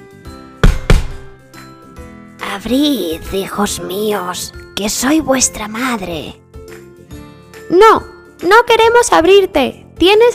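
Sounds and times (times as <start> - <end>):
knocking on a door: 0.6 - 1.3
speech: 2.6 - 6.4, 7.7 - 10.3.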